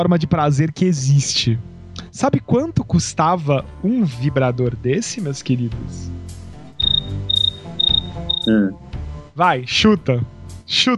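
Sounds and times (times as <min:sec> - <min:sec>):
speech: 0:00.0 - 0:06.2, 0:08.4 - 0:08.8, 0:09.4 - 0:10.9
cricket chirping sound effect: 0:06.8 - 0:08.5.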